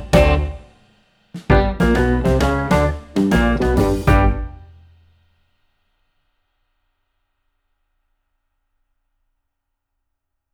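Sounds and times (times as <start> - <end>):
piano: 0.0 - 0.7, 1.5 - 4.7.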